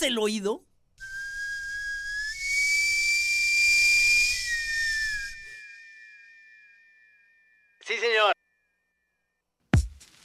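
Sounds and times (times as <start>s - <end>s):
speech: 0.0s - 0.7s
steam-whistle tone in a radio station jingle: 1.0s - 7.4s.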